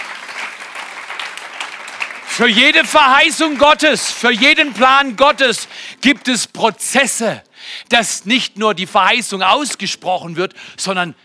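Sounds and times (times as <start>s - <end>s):
audience applause: 0.0s - 6.4s
speech: 2.4s - 11.2s.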